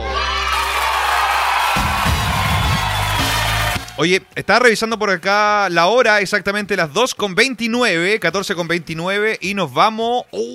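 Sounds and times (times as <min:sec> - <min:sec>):
applause: 0:00.3 - 0:04.1
speech: 0:04.0 - 0:10.5.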